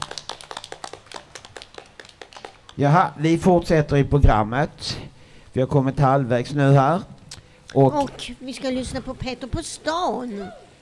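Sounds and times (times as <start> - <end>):
small group applause: 0.0 - 3.0
speech: 2.8 - 7.1, 7.7 - 10.6.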